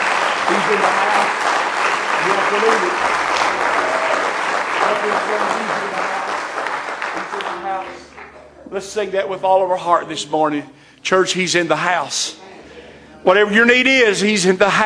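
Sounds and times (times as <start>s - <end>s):
large crowd clapping hands in praise: 0.0s - 8.5s
speech: 0.5s - 1.6s, 2.2s - 3.7s, 4.9s - 6.4s, 8.7s - 12.5s, 13.2s - 14.8s.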